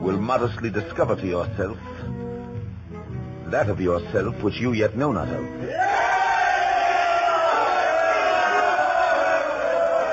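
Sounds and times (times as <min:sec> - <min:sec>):
speech: 0:00.0 - 0:02.2, 0:03.5 - 0:06.0
large crowd shouting and roaring: 0:05.7 - 0:10.1.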